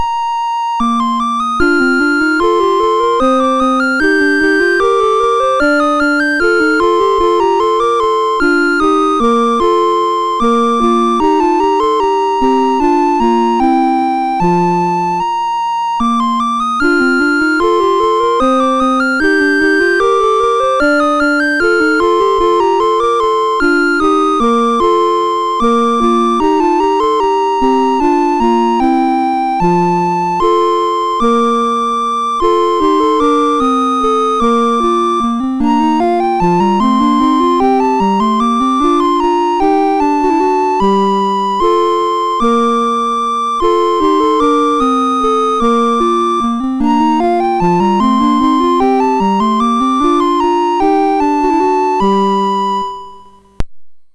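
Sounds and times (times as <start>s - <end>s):
MOS6581 SID chip synth sound: 0.0s - 53.6s.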